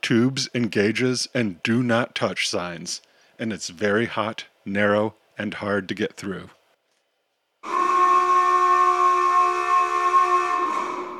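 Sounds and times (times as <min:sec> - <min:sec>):
speech: 0:00.1 - 0:06.6
loud submarine alarm: 0:07.6 - 0:11.1.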